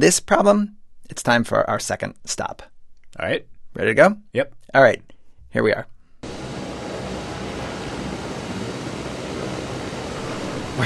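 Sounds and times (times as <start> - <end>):
speech: 0.0 - 5.9
helicopter engine roar at a rooftop helipad: 6.2 - 10.8.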